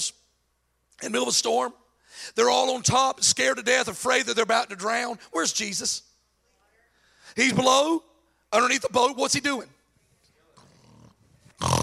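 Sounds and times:
speech: 0:01.0 - 0:06.1, 0:07.4 - 0:09.8
imitated snoring: 0:10.6 - 0:11.8.

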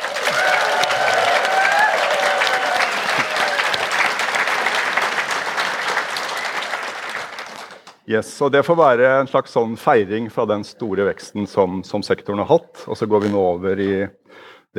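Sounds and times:
audience applause: 0:00.0 - 0:08.0
speech: 0:08.1 - 0:14.7.

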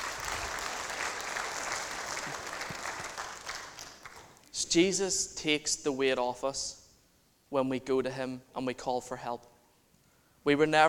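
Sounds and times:
audience clapping: 0:00.0 - 0:04.5
speech: 0:04.7 - 0:06.8, 0:07.5 - 0:09.5, 0:10.4 - 0:10.8.

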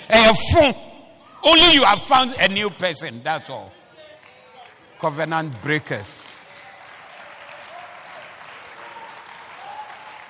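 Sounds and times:
speech: 0:00.1 - 0:03.8, 0:05.0 - 0:06.2
group of girls clapping their hands: 0:06.4 - 0:10.2.

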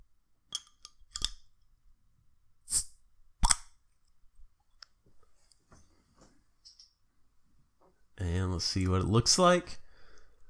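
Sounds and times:
beer bottle opening: 0:02.7 - 0:03.7
speech: 0:08.6 - 0:09.8.

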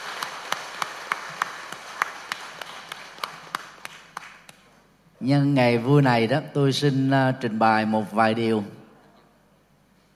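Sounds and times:
audience applause: 0:00.0 - 0:04.4
speech: 0:05.2 - 0:08.8.

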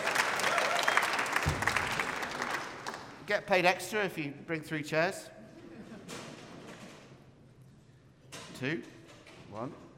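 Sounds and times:
audience applause: 0:00.0 - 0:03.2
speech: 0:03.3 - 0:05.4, 0:08.6 - 0:09.9.

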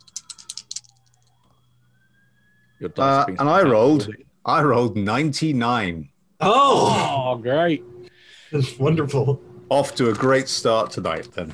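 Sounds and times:
game electronic alarm tune: 0:00.0 - 0:04.4
speech: 0:02.8 - 0:07.9, 0:08.5 - 0:11.5.

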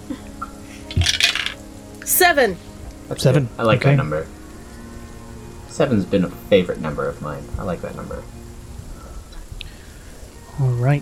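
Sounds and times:
eight-sided die rolled and dropped: 0:00.9 - 0:01.6
speech: 0:02.2 - 0:04.4, 0:05.8 - 0:08.4, 0:10.6 - 0:10.9.

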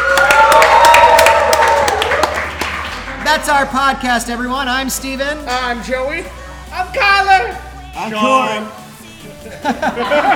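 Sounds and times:
live studio audience applauding: 0:00.0 - 0:03.4
speech: 0:03.5 - 0:08.8, 0:09.4 - 0:10.3
laughter: 0:09.2 - 0:10.3.

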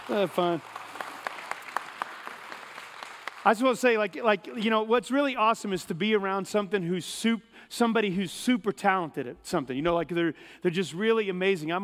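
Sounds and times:
round of applause: 0:00.0 - 0:04.0
speech: 0:00.1 - 0:00.8, 0:03.4 - 0:11.8.

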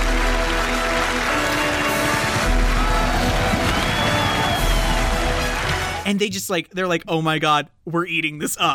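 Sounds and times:
applause sound effect: 0:00.0 - 0:06.2
speech: 0:06.1 - 0:08.7.

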